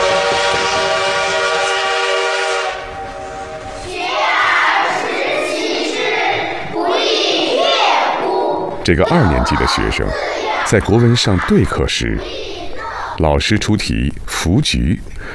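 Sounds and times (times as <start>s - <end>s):
steam locomotive roaring: 0.0s - 11.3s
speech: 8.9s - 12.5s, 13.2s - 15.3s.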